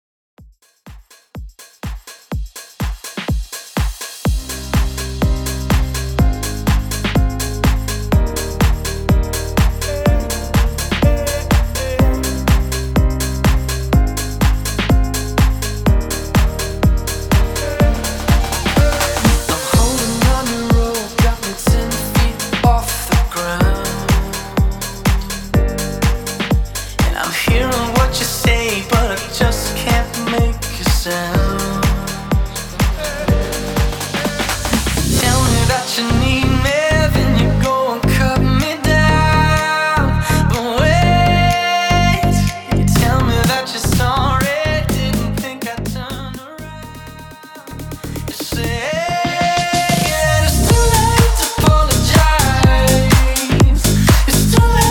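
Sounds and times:
house music mix: 1.4s - 54.8s.

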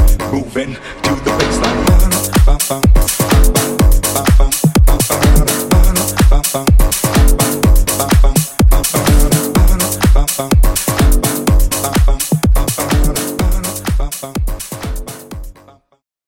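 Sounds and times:
electro funk bootleg music at 125 bpm: 0.0s - 15.7s.

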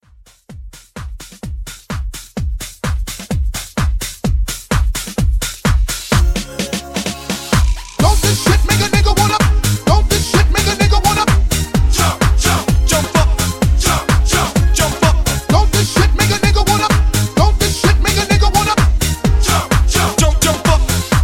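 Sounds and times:
TikTok hype dance music: 0.3s - 21.2s.

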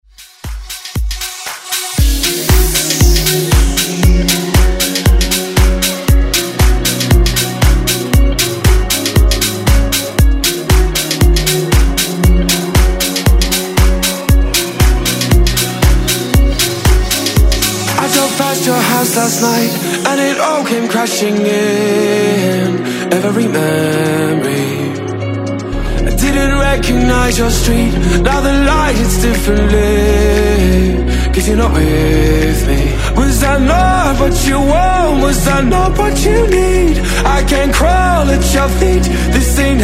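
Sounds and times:
dance music: 0.0s - 39.8s.

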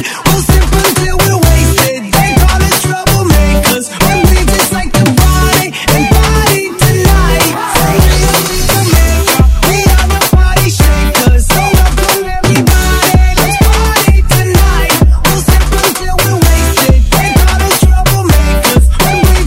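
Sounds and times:
Afrobeat drum beat: 0.0s - 19.4s.

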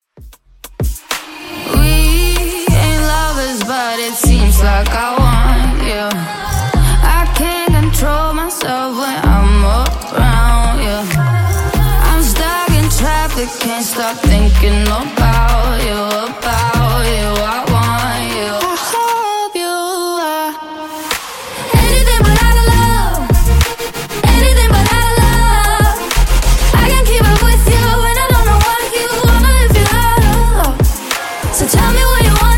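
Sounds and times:
music at 96 bpm: 0.0s - 32.5s.

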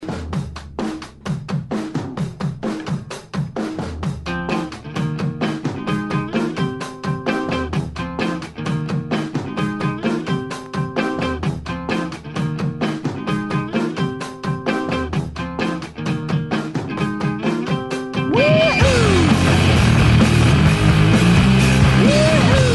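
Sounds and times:
rock music at 130 BPM: 2.6s - 22.7s.

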